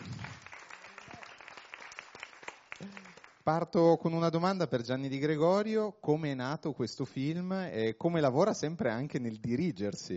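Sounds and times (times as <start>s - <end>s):
audience applause: 0.0s - 3.4s
speech: 2.8s - 10.1s.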